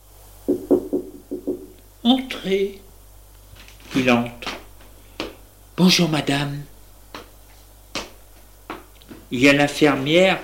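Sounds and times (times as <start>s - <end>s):
knocking on a bedroom door: 0.5s - 1.7s
speech: 2.0s - 2.8s, 3.9s - 4.5s, 5.8s - 6.7s, 9.3s - 10.4s.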